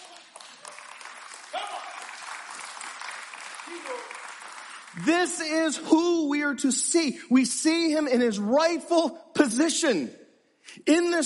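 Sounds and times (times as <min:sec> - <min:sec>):
audience applause: 0:00.0 - 0:05.6
speech: 0:05.0 - 0:11.2.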